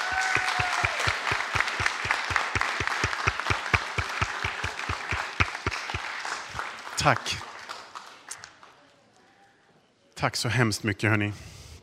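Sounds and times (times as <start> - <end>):
warm applause from a crowd: 0.0 - 8.7
speech: 7.0 - 7.5, 10.2 - 11.5.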